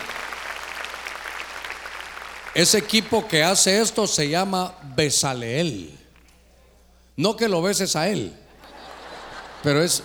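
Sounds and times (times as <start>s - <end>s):
audience clapping: 0.0s - 3.3s
speech: 2.6s - 6.0s, 7.2s - 8.8s, 9.6s - 10.0s
laughter: 8.5s - 10.0s.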